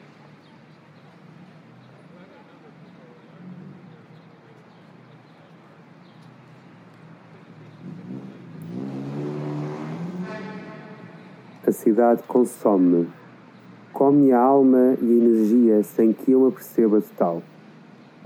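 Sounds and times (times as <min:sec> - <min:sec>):
city street traffic: 0:00.0 - 0:18.2
vehicle engine revving past: 0:03.3 - 0:04.1, 0:07.5 - 0:11.7
speech: 0:11.7 - 0:13.2, 0:14.1 - 0:17.5.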